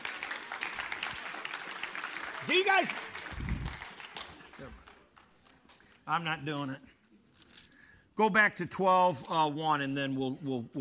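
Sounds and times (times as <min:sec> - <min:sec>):
audience applause: 0:00.0 - 0:05.7
speech: 0:02.5 - 0:03.3, 0:06.1 - 0:06.9, 0:08.2 - 0:10.7.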